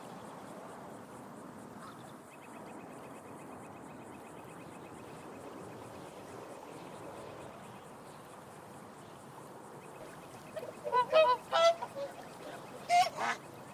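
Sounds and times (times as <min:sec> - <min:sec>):
swans calling: 0:10.4 - 0:13.7.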